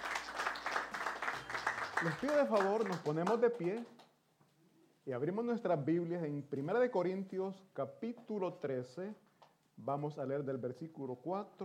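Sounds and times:
audience applause: 0.0s - 3.9s
speech: 2.0s - 4.0s, 5.0s - 9.2s, 9.8s - 11.6s.

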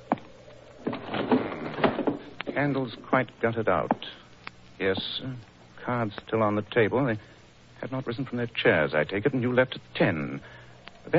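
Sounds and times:
window being closed: 0.8s - 2.3s
speech: 2.6s - 4.2s, 4.8s - 11.1s.

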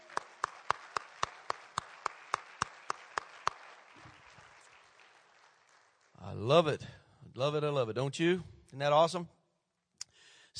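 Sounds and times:
church congregation clapping to welcome new members: 0.0s - 6.8s
speech: 6.3s - 9.4s.

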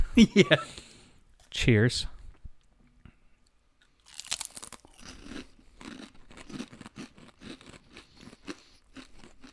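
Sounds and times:
speech: 0.2s - 0.8s, 1.6s - 2.2s
crunching on a vinegar potato chip: 3.8s - 9.5s.

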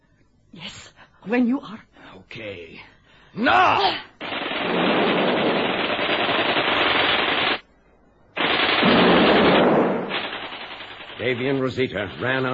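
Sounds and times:
speech: 0.6s - 5.0s, 11.2s - 12.5s
rapid machine gun fire: 4.2s - 7.6s, 8.4s - 11.8s.

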